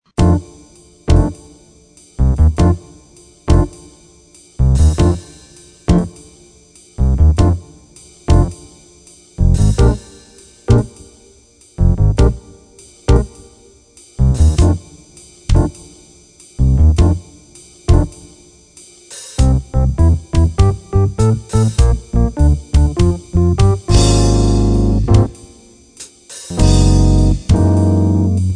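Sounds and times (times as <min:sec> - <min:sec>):
jazz blues music: 0:00.2 - 0:00.4, 0:01.1 - 0:01.4, 0:02.2 - 0:02.8, 0:03.5 - 0:03.8, 0:04.6 - 0:05.3, 0:05.9 - 0:06.2, 0:07.0 - 0:07.6, 0:08.3 - 0:08.6, 0:09.4 - 0:10.1, 0:10.7 - 0:11.0, 0:11.8 - 0:12.4, 0:13.1 - 0:13.3, 0:14.2 - 0:14.8, 0:15.5 - 0:15.8, 0:16.6 - 0:17.2, 0:17.9 - 0:18.1, 0:19.4 - 0:25.5, 0:26.5 - 0:28.5.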